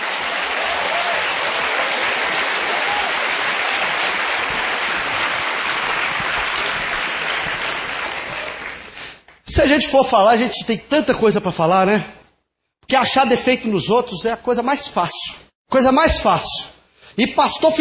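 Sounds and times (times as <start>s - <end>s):
audience applauding: 0.0s - 9.4s
speech: 9.6s - 12.2s, 12.9s - 17.7s.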